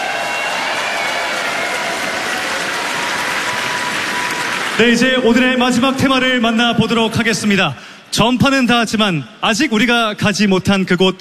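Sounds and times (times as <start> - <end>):
crowd applauding: 0.0 - 6.1
speech: 4.8 - 11.1.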